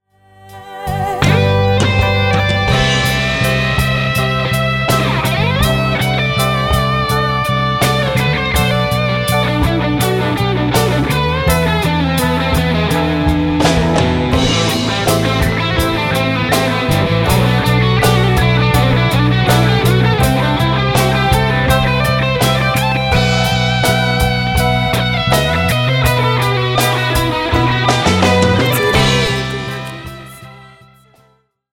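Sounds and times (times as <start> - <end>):
guitar through Boss overdrive: 0.5 - 31.1.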